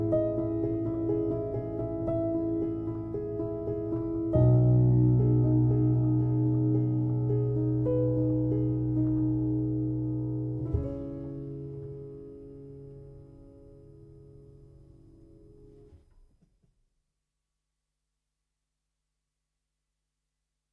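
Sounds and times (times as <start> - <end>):
piano: 0.0 - 16.4.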